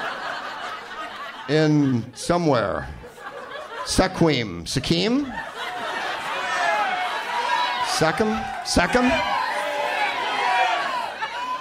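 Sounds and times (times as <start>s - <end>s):
laughter: 0.0s - 11.5s
speech: 1.5s - 3.0s, 3.9s - 5.5s, 8.0s - 9.4s
audience yelling at once: 5.3s - 11.5s.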